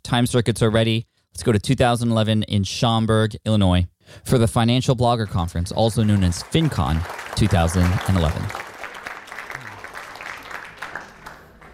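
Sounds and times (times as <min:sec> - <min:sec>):
speech: 0:00.1 - 0:08.7
conference audience applause: 0:05.8 - 0:11.7.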